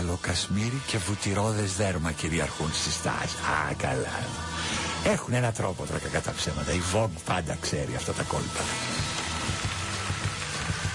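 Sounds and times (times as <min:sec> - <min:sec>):
speech: 0:00.2 - 0:09.0
audience applause: 0:08.6 - 0:10.9.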